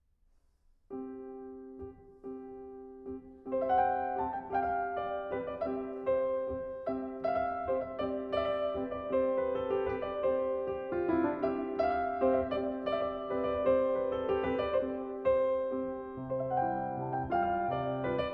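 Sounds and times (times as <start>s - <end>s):
piano dance piece: 0.9s - 18.3s.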